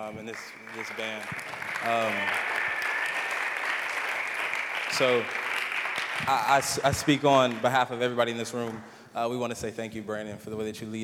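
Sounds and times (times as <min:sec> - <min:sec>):
speech: 0:00.0 - 0:02.6, 0:04.9 - 0:05.4, 0:06.2 - 0:11.0
crowd applause: 0:00.0 - 0:08.8.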